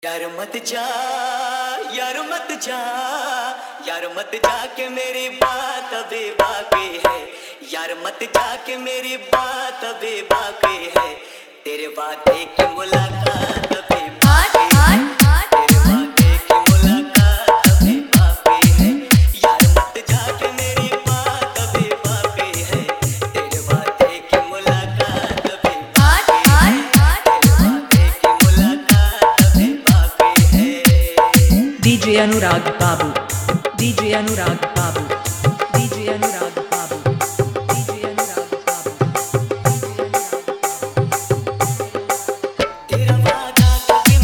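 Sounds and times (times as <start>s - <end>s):
hard dholki drum mix: 5.4s - 5.6s, 6.4s - 7.3s, 10.3s - 11.2s, 12.3s - 44.2s.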